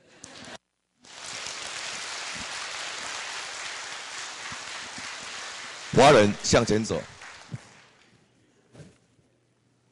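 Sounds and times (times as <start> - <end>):
audience applause: 0.2 - 8.0
speech: 6.0 - 7.2.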